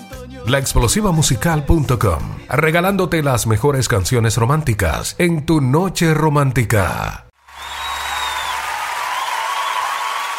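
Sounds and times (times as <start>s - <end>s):
speech: 0.5s - 7.3s
crowd applause: 7.4s - 10.3s.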